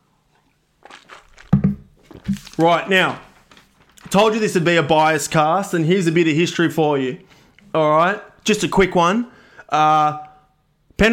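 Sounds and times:
speaker taking a drink of water: 0.3s - 2.6s
speech: 2.6s - 3.3s, 4.1s - 10.3s.

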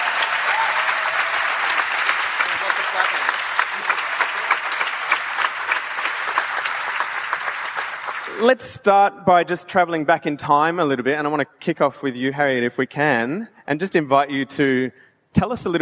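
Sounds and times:
audience round of applause: 0.0s - 8.4s
speech: 8.4s - 15.8s.

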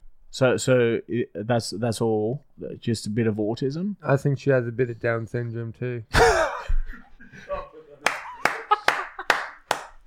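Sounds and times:
speech: 0.4s - 6.4s
laughter: 6.2s - 9.6s
audience clapping: 8.0s - 10.0s.

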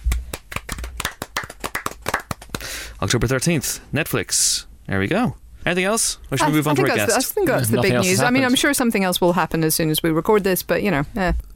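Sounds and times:
applause: 0.1s - 2.8s
speech: 3.0s - 11.5s.

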